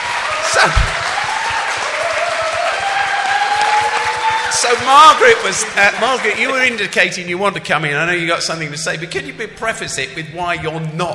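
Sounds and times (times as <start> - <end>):
audience applause at a live discussion gathering: 0.0 - 6.9
speech: 0.6 - 1.0, 4.5 - 11.1.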